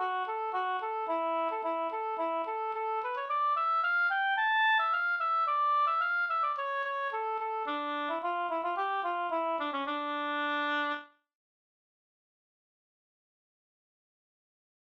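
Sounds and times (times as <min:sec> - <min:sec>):
polska folk dance tune: 0:00.0 - 0:10.9.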